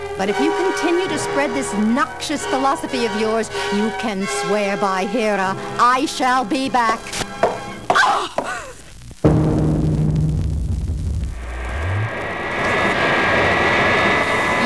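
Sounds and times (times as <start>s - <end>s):
speech: 0.2s - 7.3s
thumps and whooshes: 9.3s - 12.8s
airplane engine roaring in flight: 9.3s - 14.6s.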